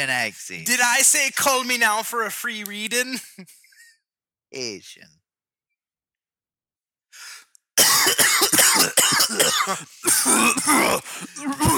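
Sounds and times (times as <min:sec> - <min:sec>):
speech: 0:00.0 - 0:03.6, 0:04.5 - 0:05.2, 0:08.7 - 0:11.7
person inhaling: 0:07.1 - 0:07.6, 0:11.0 - 0:11.4
harsh coughing: 0:07.8 - 0:11.7.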